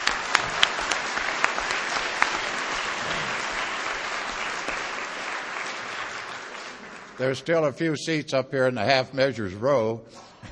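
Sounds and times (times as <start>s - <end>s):
audience applause at an Al-Anon meeting: 0.0s - 7.5s
speech: 7.2s - 10.3s.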